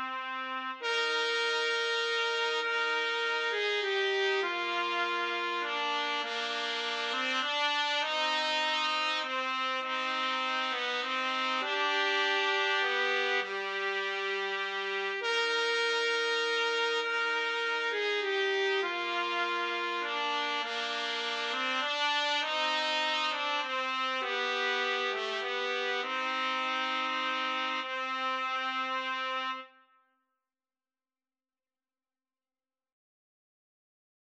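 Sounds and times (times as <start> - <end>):
trumpet trio playing: 0.0 - 29.7.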